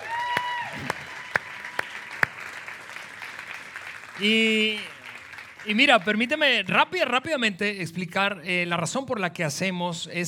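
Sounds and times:
audience applauding the band: 0.0 - 6.5
speech: 4.2 - 4.9, 5.6 - 10.2.

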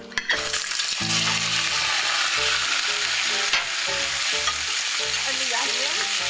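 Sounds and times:
meat frying in hot vegetable oil in a saucepan: 0.3 - 6.2.

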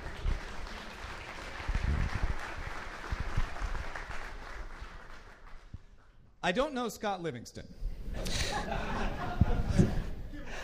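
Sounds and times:
audience round of applause: 0.0 - 5.7
speech: 6.4 - 10.0
laughter: 8.2 - 10.6.

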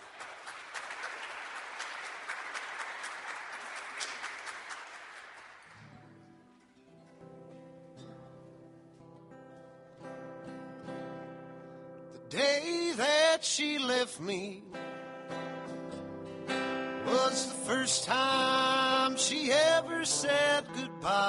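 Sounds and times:
audience applause welcoming a performer on stage: 0.0 - 6.1
speech: 12.3 - 14.8, 17.3 - 21.2.

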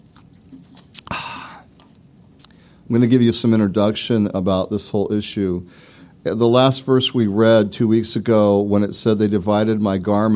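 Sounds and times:
mouth sounds: 0.0 - 2.7
sipping water from a glass: 0.0 - 2.9
speech: 2.9 - 10.3.

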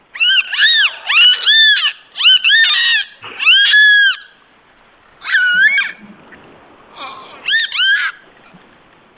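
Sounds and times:
dolphin squealing calls: 0.1 - 4.4, 5.2 - 6.0, 7.0 - 8.2.

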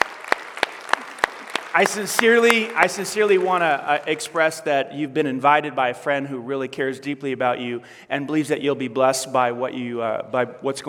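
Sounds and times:
church audience clapping for first-time guests: 0.0 - 4.6
speech: 1.8 - 10.8.

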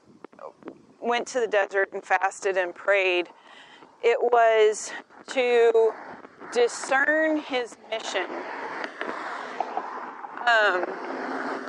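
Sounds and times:
speech: 1.0 - 8.6, 10.4 - 11.0
loud street traffic moving off: 5.9 - 11.6.

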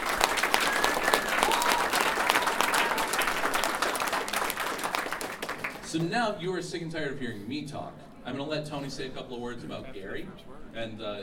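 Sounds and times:
audience applause: 0.0 - 6.0
faint whistles: 0.4 - 3.2
speech: 5.9 - 11.2.

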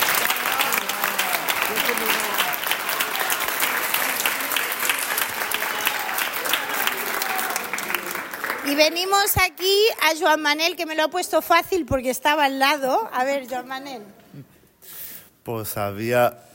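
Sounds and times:
audience clapping: 0.0 - 10.2
speech: 8.8 - 14.5, 15.4 - 16.5.

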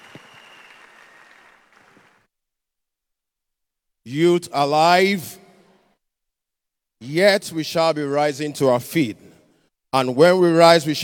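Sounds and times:
audience clapping: 0.0 - 2.3
speech: 4.1 - 5.4, 7.0 - 9.3, 10.0 - 11.0.

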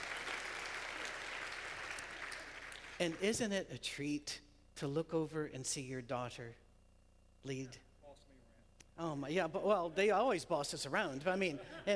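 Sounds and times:
audience applause: 0.0 - 3.1
speech: 3.0 - 6.6, 7.4 - 7.9, 9.0 - 11.9.

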